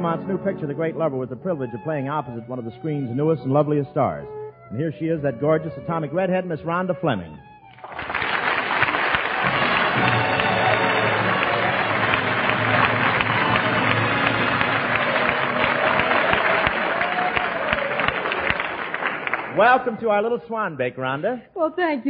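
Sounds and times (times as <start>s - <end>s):
speech: 0.0s - 8.1s, 19.6s - 22.0s
studio audience applause: 7.8s - 20.0s.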